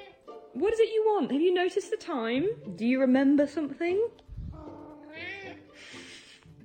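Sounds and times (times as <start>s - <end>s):
speech: 0.6s - 4.3s
cat meowing for dinner: 4.4s - 5.7s.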